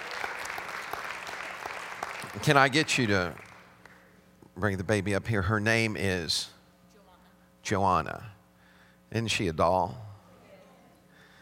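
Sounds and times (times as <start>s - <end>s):
audience hand clapping: 0.0s - 4.0s
speech: 2.4s - 3.4s, 4.6s - 6.6s, 7.6s - 8.4s, 9.1s - 10.1s.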